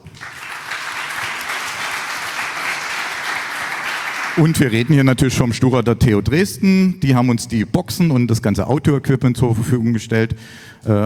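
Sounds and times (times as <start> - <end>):
audience applause: 0.0 - 5.1
speech: 4.4 - 11.0.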